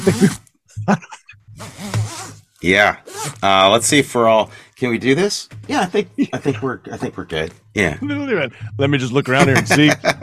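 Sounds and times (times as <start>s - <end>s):
laughter: 0.0s - 1.4s, 5.7s - 10.2s
speech: 0.0s - 1.9s, 2.6s - 10.2s
zipper pulled down: 1.6s - 2.4s, 3.1s - 3.4s.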